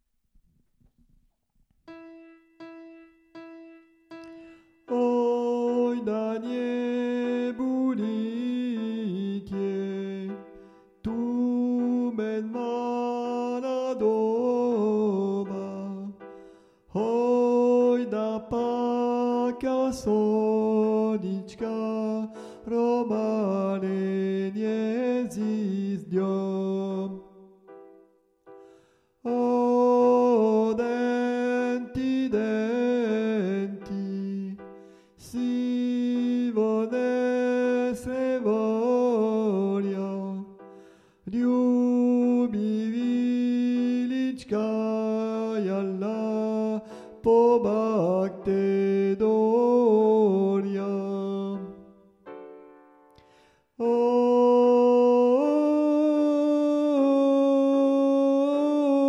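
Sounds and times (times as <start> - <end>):
soprano singing: 2.0 - 28.0, 29.2 - 52.6, 53.8 - 59.0.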